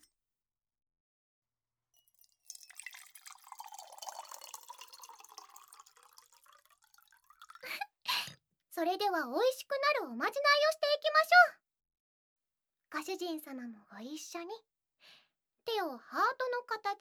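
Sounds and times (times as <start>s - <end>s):
original cocktail pouring into a glass: 2.0s - 7.8s
speech: 8.8s - 11.6s, 12.9s - 14.7s, 15.7s - 16.9s.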